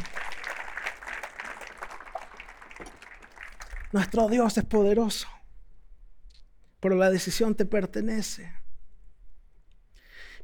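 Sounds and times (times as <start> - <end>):
audience applause: 0.0 - 4.3
speech: 3.9 - 5.4, 6.8 - 8.6.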